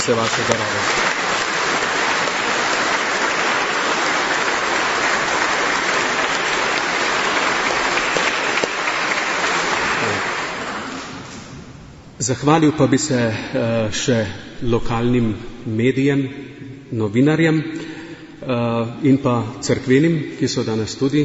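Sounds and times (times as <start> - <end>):
speech: 0.0 - 1.4, 12.3 - 21.2
crowd applause: 0.0 - 11.4.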